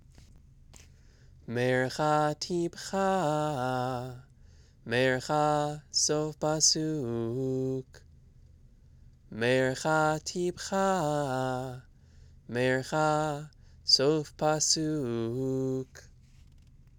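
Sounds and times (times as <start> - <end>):
person chanting sof pasuk trope: 1.5 - 4.3, 4.9 - 8.0, 9.3 - 11.8, 12.5 - 16.0.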